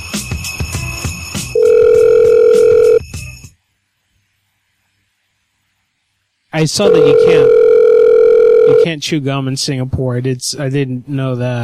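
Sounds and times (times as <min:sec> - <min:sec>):
telephone call ringing tone: 0:01.5 - 0:03.0, 0:06.8 - 0:08.9
speech: 0:06.6 - 0:07.6, 0:08.7 - 0:11.6.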